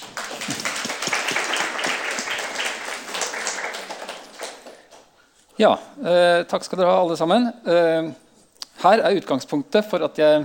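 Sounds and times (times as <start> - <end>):
audience applause: 0.0 - 5.0
speech: 5.6 - 8.2, 8.8 - 10.4.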